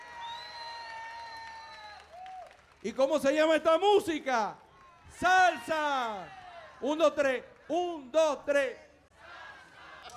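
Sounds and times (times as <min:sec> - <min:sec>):
audience applause and cheering for a live salsa band: 0:00.0 - 0:02.8
speech: 0:02.8 - 0:08.8.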